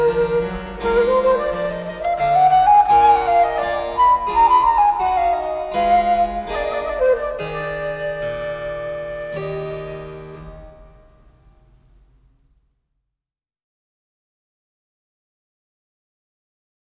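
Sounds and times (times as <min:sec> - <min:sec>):
minuet in D minor: 0:00.0 - 0:11.1.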